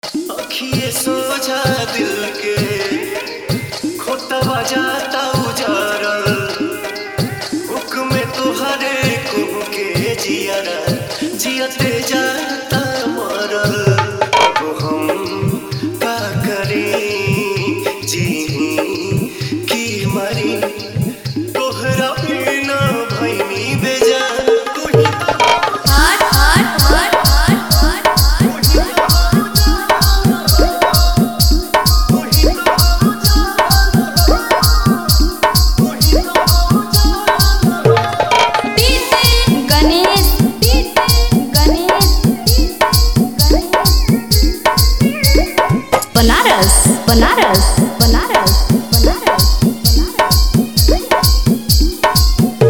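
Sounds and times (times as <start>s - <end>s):
Bhojpuri sad song DJ remix: 0.0s - 24.9s, 25.6s - 52.6s.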